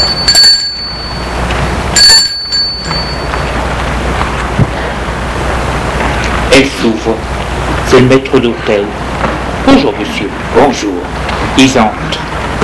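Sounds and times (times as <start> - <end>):
doorbell chimes: 0.0 - 3.7
steady rushing noise: 0.0 - 12.6
speech: 6.6 - 7.3, 7.9 - 9.0, 9.6 - 12.3.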